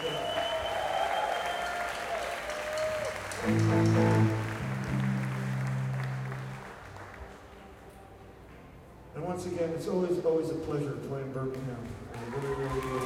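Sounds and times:
audience applause: 0.0s - 7.6s, 12.1s - 13.0s
speech: 3.4s - 4.4s, 9.4s - 13.0s.

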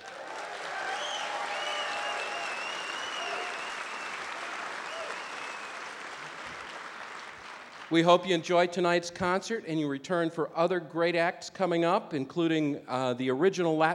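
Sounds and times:
concert crowd whistles and cheers: 0.0s - 6.1s
concert crowd applause: 0.0s - 8.1s
speech: 7.9s - 13.9s.

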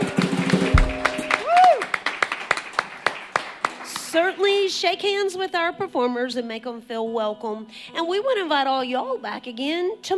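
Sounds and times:
audience applause: 0.0s - 4.4s
speech: 4.2s - 10.1s.

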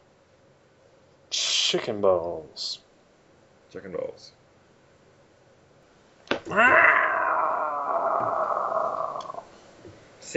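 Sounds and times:
speech: 1.7s - 2.8s, 3.7s - 4.4s, 6.5s - 7.0s
person screeching in imitation of a pterodactyl: 6.5s - 9.5s.

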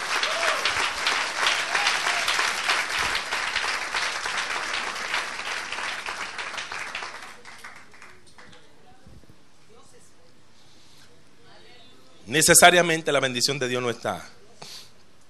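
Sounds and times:
audience applause: 0.0s - 8.6s
speech: 12.3s - 14.4s.

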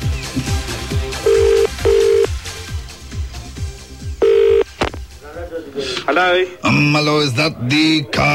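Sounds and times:
rhythmic thumping beat: 0.0s - 5.2s
telephone ringing on a prank call: 1.2s - 2.3s, 4.2s - 4.8s
speech: 6.1s - 8.3s.

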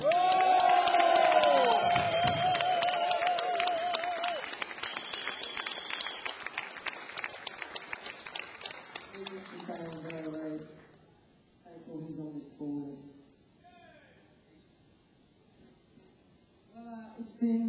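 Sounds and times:
audience applause: 0.0s - 10.8s.

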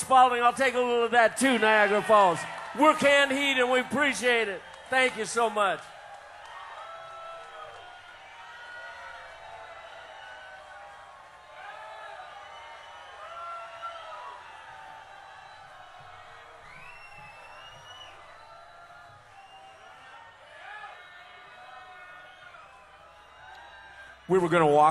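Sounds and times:
speech: 0.0s - 5.9s, 24.3s - 24.8s
large audience cheering and applauding: 0.0s - 24.8s
high whistles and whoops: 8.6s - 24.7s.

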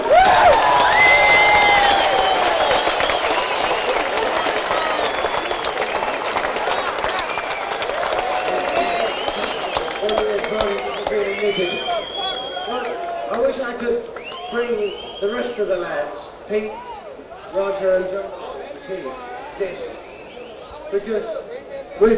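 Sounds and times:
shrill whistles and whoops: 0.0s - 13.3s, 14.2s - 15.5s, 19.8s - 20.9s
audience applause: 0.0s - 15.0s
crowd cheering: 0.0s - 15.8s, 16.5s - 21.5s.

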